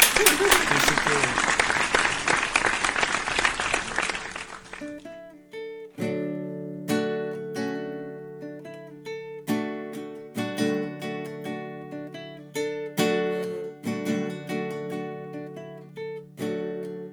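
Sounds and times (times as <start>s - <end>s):
laughter: 0.0s - 4.8s
audience applauding: 0.0s - 5.0s
music: 4.8s - 17.1s.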